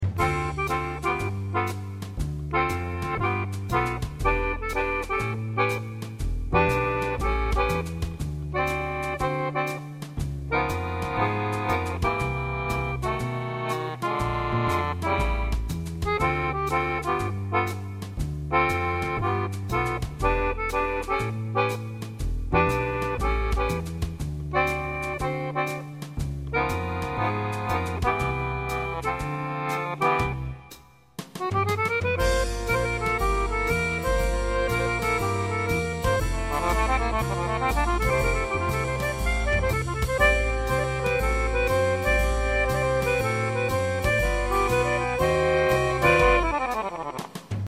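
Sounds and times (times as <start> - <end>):
accordionist playing accordion: 0.0 - 47.6.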